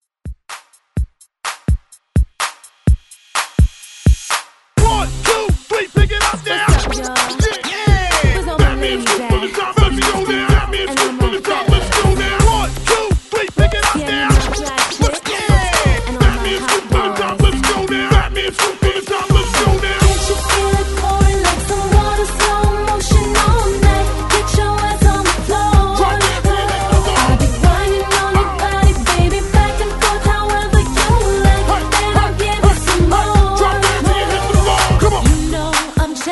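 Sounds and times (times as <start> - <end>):
hype drum beat with scratching: 0.3 - 36.3.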